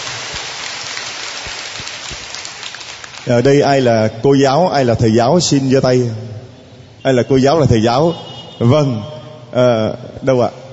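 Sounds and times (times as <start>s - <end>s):
audience applause: 0.0s - 3.4s
speech: 3.3s - 6.3s, 7.0s - 10.6s.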